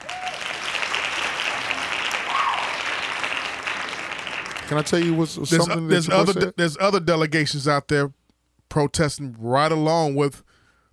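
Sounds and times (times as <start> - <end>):
hand claps: 0.0 - 5.2
speech: 4.7 - 10.5.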